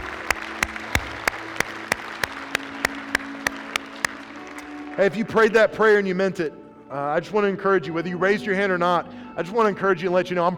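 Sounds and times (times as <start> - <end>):
audience applauding: 0.0 - 5.5
speech: 5.0 - 10.5.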